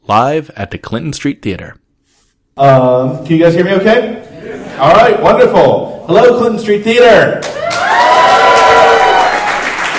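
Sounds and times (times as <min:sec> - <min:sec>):
speech: 0:00.1 - 0:01.8, 0:02.6 - 0:08.0
audience applause at the Clinton Street Theater in Portland: 0:07.4 - 0:09.9
audience whooping at the Clinton Street Theater in Portland: 0:07.4 - 0:09.9.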